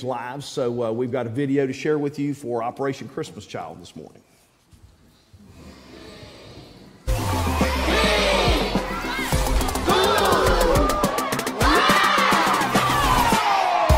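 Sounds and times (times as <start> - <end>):
speech: 0.0 - 4.3
children cheering and shouting: 7.0 - 13.9.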